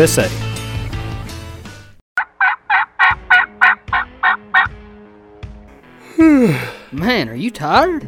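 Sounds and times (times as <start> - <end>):
speech: 0.0 - 0.5, 6.9 - 8.0
turkey gobble from a game call: 2.2 - 4.8.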